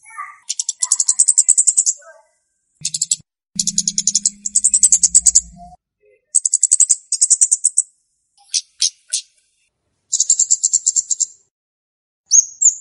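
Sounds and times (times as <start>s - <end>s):
flowerpecker lure calls of very high rapid ticks and trills: 0.0s - 2.2s, 2.8s - 9.4s, 10.1s - 11.4s.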